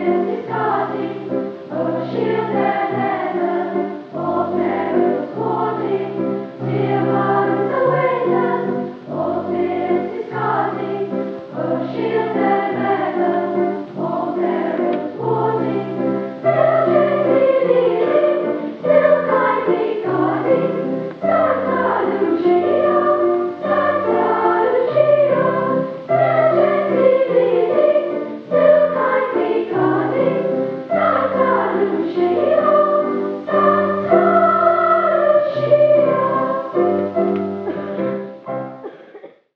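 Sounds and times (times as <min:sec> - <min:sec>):
madrigal choir singing: 0:00.0 - 0:38.5
piano: 0:00.0 - 0:39.5.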